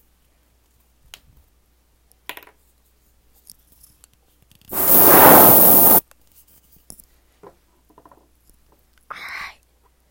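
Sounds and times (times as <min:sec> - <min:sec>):
spray deodorant being sprayed: 0:04.7 - 0:06.0.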